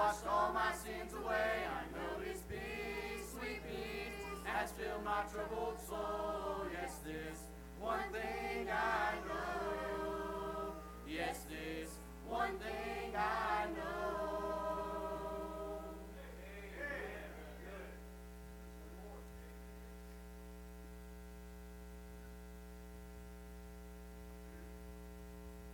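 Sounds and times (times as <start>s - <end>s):
family singing: 0.0s - 16.3s.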